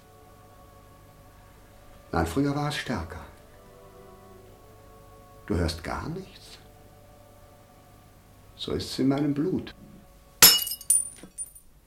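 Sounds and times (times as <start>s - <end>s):
speech: 2.1s - 3.3s, 5.5s - 6.6s, 8.6s - 9.9s
glass pieces clinking as they settle: 10.4s - 11.6s
glass shattering: 10.4s - 11.6s.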